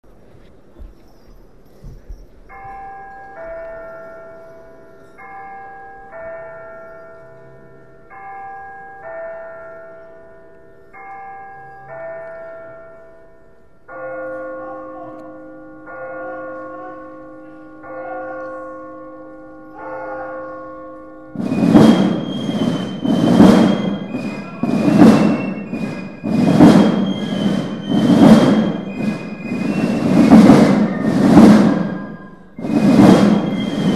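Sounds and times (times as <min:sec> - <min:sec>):
Basel carnival drumming: 0:21.4 - 0:33.9.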